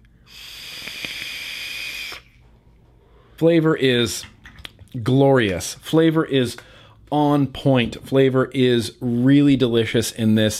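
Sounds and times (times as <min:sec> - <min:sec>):
vape device hissing during an inhale: 0:00.2 - 0:02.4
speech: 0:03.4 - 0:04.4, 0:05.0 - 0:10.5.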